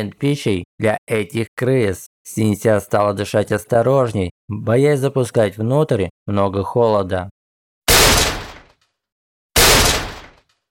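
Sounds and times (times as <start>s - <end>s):
speech: 0.0s - 7.4s
blows striking an iron door: 9.6s - 10.4s.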